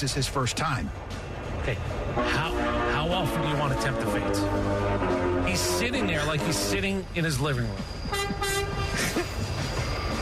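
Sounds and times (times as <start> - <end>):
speech: 0.0 - 8.4
rail rumble: 0.0 - 10.2
train horn: 2.2 - 6.8, 8.1 - 8.9.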